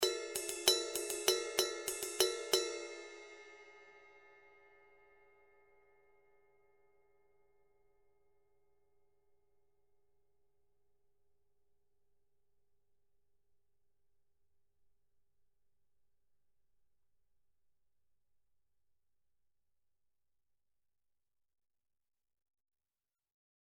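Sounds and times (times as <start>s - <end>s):
ZXT 20 CTR ride cymbal: 0.0s - 4.1s.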